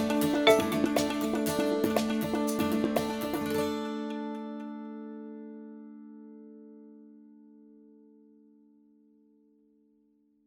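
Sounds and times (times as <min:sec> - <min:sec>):
background music under dialogue: 0:00.0 - 0:04.3.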